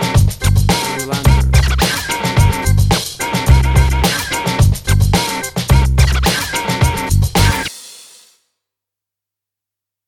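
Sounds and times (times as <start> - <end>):
1990s hip hop music: 0.0 - 7.8.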